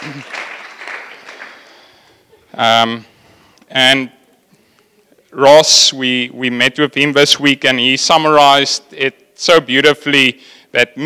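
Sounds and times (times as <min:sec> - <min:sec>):
crowd clapping: 0:00.0 - 0:02.2
speech: 0:00.2 - 0:00.4, 0:02.6 - 0:03.1, 0:03.7 - 0:04.2, 0:05.3 - 0:11.0.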